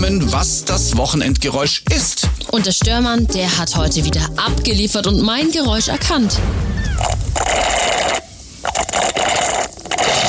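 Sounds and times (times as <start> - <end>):
speech: 0.0 - 7.8
slurping iced coffee through a straw: 7.1 - 10.2.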